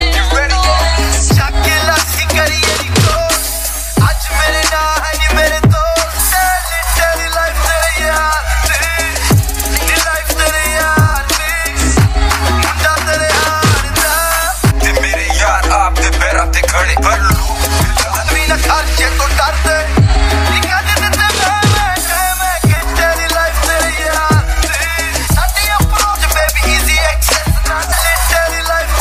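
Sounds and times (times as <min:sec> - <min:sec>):
remix ringtone: 0:00.0 - 0:28.9.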